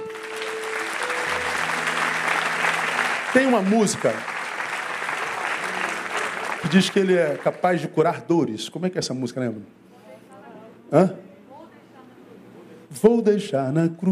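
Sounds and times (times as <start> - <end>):
audience applause: 0.0 - 8.1
speech: 3.4 - 4.3, 6.6 - 9.8, 10.9 - 11.2, 13.0 - 14.0.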